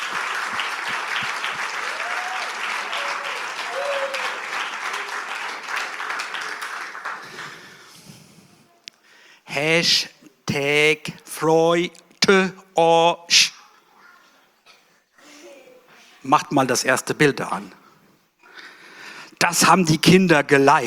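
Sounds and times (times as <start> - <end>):
audience applause: 0.0 - 8.0
speech: 9.6 - 13.5, 16.3 - 17.8, 19.5 - 20.8.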